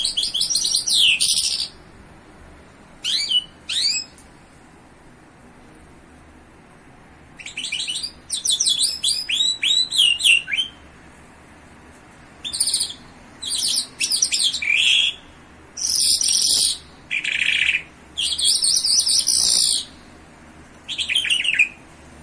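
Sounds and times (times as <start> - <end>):
bimaculated lark song: 0.0 - 2.0, 2.9 - 4.3, 7.2 - 11.0, 12.4 - 20.2, 20.8 - 21.9.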